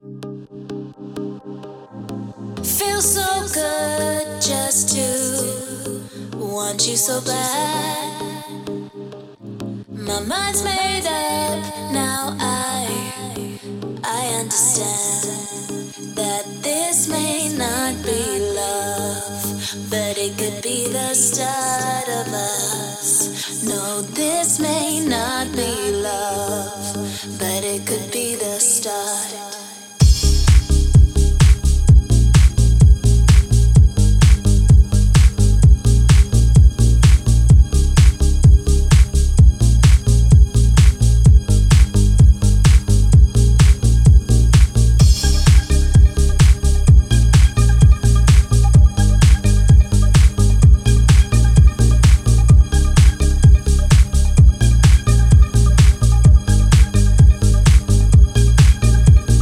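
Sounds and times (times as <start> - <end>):
house music grooves: 0.0 - 59.4.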